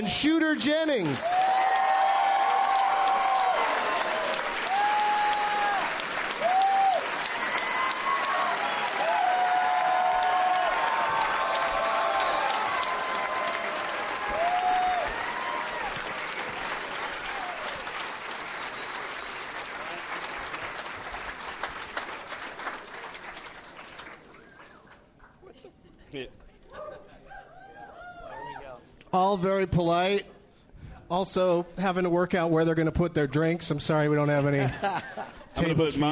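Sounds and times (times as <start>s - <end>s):
speech: 0.0s - 1.6s, 29.4s - 30.3s, 31.1s - 36.1s
audience applauding as three guests are welcomed onstage: 0.0s - 25.5s
laughter: 25.2s - 27.9s, 34.4s - 36.1s.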